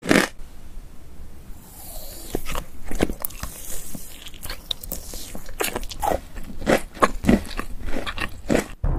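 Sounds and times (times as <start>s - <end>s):
person eating candy: 1.6s - 8.8s.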